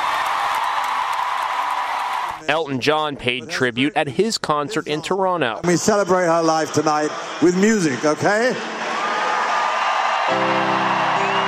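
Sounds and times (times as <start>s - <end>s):
concert crowd applause: 0.0s - 2.5s, 6.3s - 11.4s
speech: 2.5s - 8.8s, 10.3s - 10.5s.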